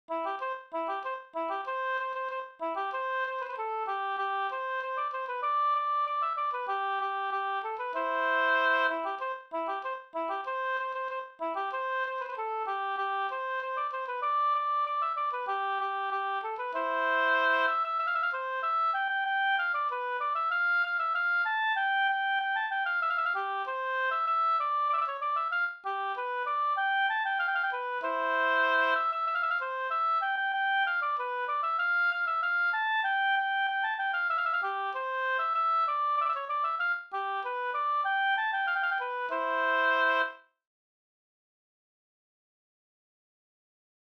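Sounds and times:
polka music: 0:00.1 - 0:40.4.

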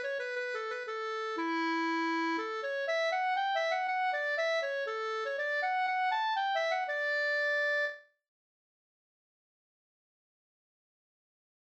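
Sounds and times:
polska folk dance tune: 0:00.0 - 0:08.0.

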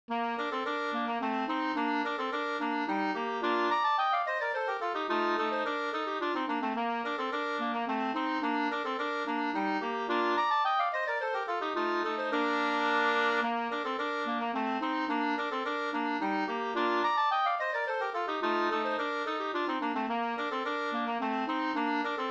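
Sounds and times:
polska folk tune: 0:00.1 - 0:22.2.

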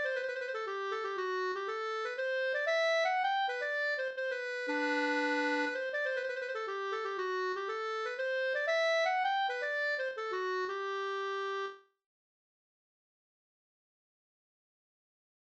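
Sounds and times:
polska folk dance tune: 0:00.0 - 0:11.7.

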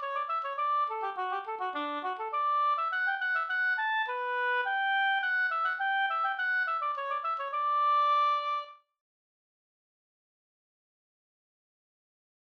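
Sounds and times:
polska folk dance tune: 0:00.0 - 0:08.7.

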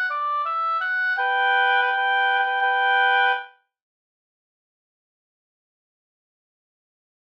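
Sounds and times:
wedding march music: 0:00.1 - 0:03.4.

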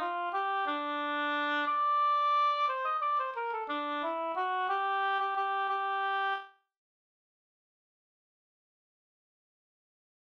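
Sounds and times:
waltz music: 0:00.0 - 0:06.4.

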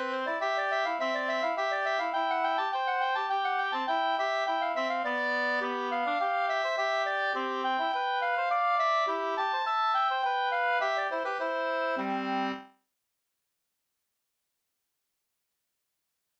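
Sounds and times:
two-part slangpolska: 0:00.0 - 0:12.6.

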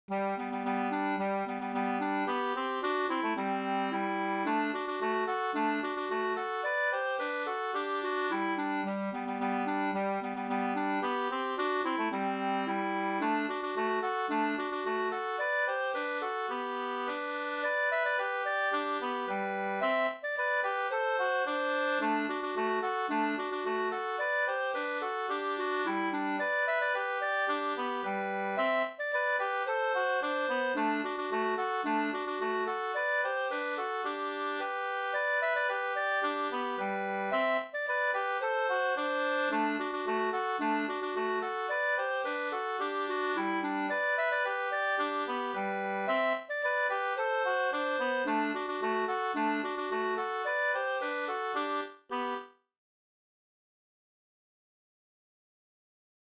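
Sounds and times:
polka in G major: 0:00.1 - 0:52.5.

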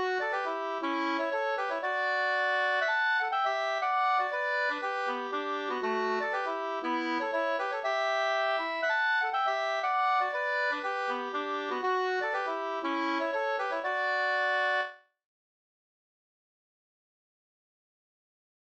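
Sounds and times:
Rorospols folk dance tune: 0:00.0 - 0:14.9.

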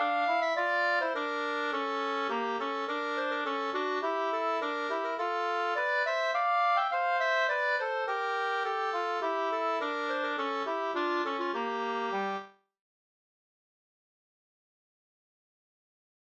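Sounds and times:
polska folk dance tune: 0:00.0 - 0:12.5.

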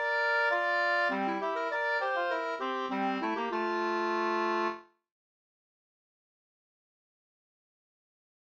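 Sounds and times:
Swedish polska folk tune: 0:00.0 - 0:05.0.

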